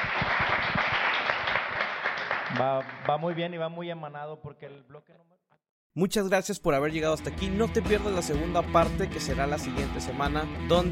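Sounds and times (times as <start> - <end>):
audience applause: 0.0 - 3.6
speech: 2.5 - 5.4, 6.0 - 10.8.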